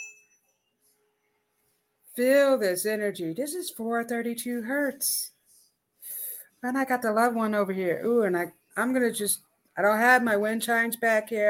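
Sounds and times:
bell ding: 0.0 - 0.7
speech: 2.2 - 5.3, 6.6 - 11.4.

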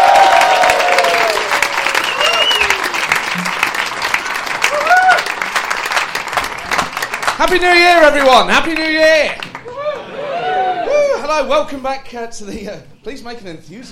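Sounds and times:
audience applause: 0.0 - 11.0
speech: 7.4 - 9.5, 11.3 - 13.8.

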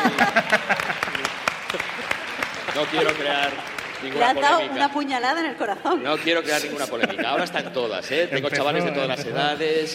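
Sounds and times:
laughter: 0.0 - 4.4, 6.0 - 9.8
audience applause: 0.0 - 5.0
speech: 2.9 - 9.9.

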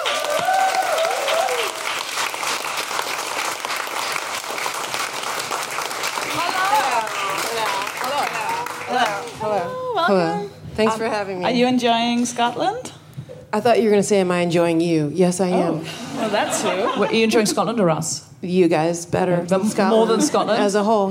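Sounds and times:
audience applause: 0.0 - 9.6
speech: 10.1 - 12.9, 13.5 - 21.1
laughter: 15.7 - 17.8, 19.6 - 20.9.

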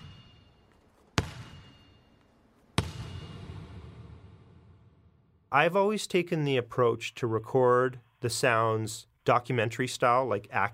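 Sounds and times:
bright metallic ping: 0.0 - 4.0
basketball slammed hard on the floor: 1.2 - 1.8, 2.8 - 4.5
speech: 5.5 - 10.7.

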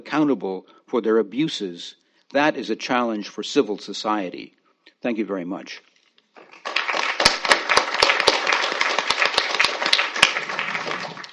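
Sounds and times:
speech: 0.0 - 5.9
audience clapping: 6.4 - 11.3.

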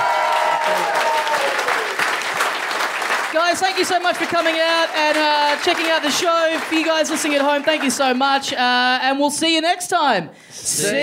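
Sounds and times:
cheers and whoops: 0.0 - 2.0
live audience round of applause: 0.0 - 8.5
speech: 3.5 - 11.0.

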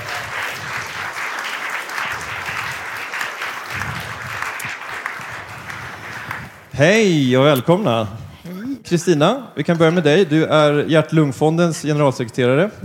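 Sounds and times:
audience applause greeting guests at a heart and lung health event: 0.0 - 6.6
speech: 6.8 - 8.2, 8.9 - 12.8.

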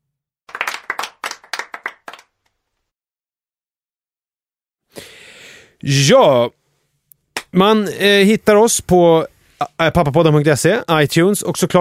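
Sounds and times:
applause: 0.5 - 2.5
speech: 5.8 - 6.6, 7.5 - 11.8.

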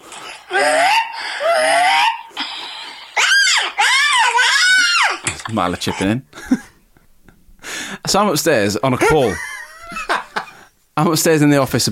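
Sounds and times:
child imitating dinosaur sounds: 0.4 - 5.3
speech: 5.6 - 6.6, 8.1 - 9.5, 11.0 - 11.9.

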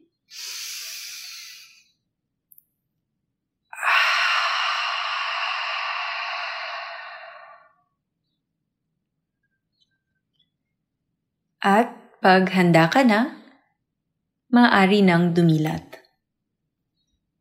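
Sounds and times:
deep breathing in and out: 3.7 - 7.9
speech: 11.6 - 13.4, 14.5 - 15.9.

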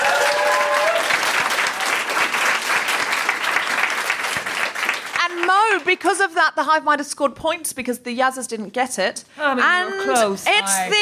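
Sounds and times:
audience applause: 0.0 - 5.8
speech: 5.8 - 11.0.

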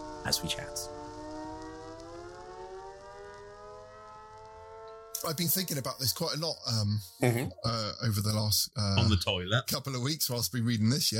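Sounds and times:
siren-like alarm wailing: 0.0 - 6.9
speech: 0.2 - 1.0, 5.2 - 11.1.

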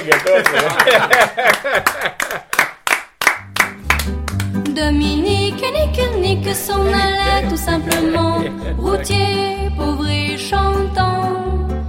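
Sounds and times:
laughter: 0.0 - 2.6, 6.5 - 9.3
speech: 0.0 - 2.6, 4.8 - 11.6
hands clapping at the close of an interview: 0.0 - 4.8, 7.8 - 8.2.

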